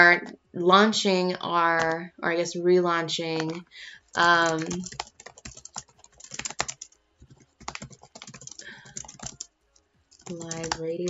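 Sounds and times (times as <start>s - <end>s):
speech: 0.0s - 5.1s, 10.3s - 11.0s
typing on a computer keyboard: 3.4s - 9.5s, 10.1s - 11.0s.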